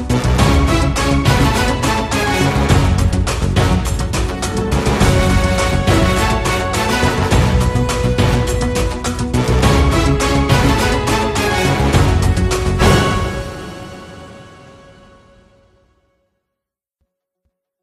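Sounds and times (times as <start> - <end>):
floor exercise music: 0.0 - 13.5.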